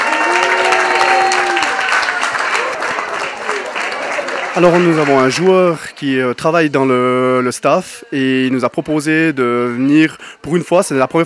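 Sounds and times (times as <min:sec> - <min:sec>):
audience applause: 0:00.0 - 0:05.7
speech: 0:04.6 - 0:11.2.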